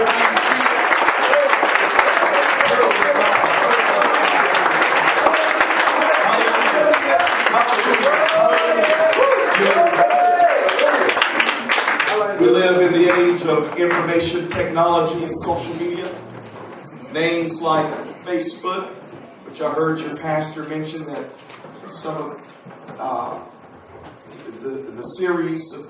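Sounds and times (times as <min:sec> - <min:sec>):
audience clapping hands: 0:00.0 - 0:17.8
speech: 0:13.6 - 0:15.8, 0:17.2 - 0:19.0, 0:19.6 - 0:22.4, 0:23.0 - 0:23.5, 0:24.6 - 0:25.8.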